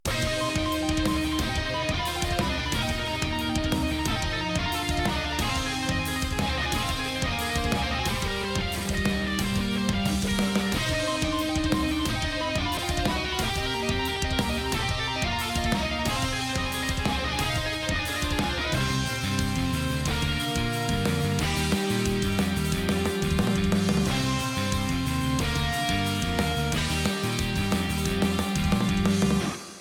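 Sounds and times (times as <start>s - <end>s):
chorus all no bass: 0.0s - 29.7s.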